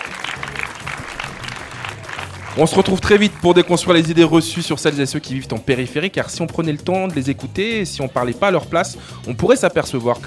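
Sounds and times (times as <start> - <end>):
audience applause: 0.0 - 5.4
speech: 2.6 - 10.2.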